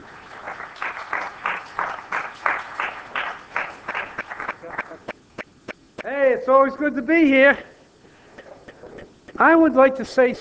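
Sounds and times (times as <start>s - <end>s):
church congregation applause welcoming a guest preacher: 0.0s - 5.2s
speech: 6.4s - 7.7s, 9.4s - 10.3s.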